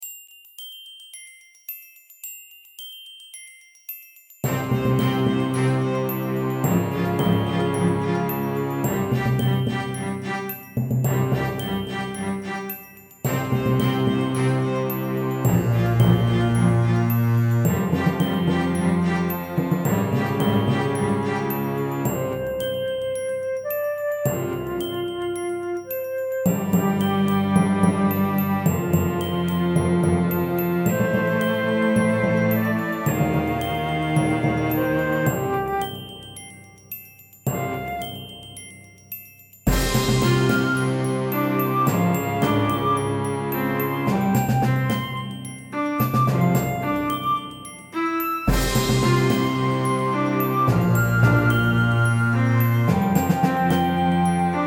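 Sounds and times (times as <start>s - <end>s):
orchestra playing: 4.5s - 36.2s, 39.7s - 54.6s.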